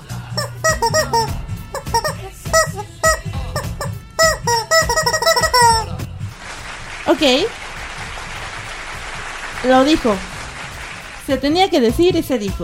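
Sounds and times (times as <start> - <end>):
pet chick peeping: 0.4 - 5.9
speech: 7.1 - 7.6, 9.6 - 10.3, 11.3 - 12.6.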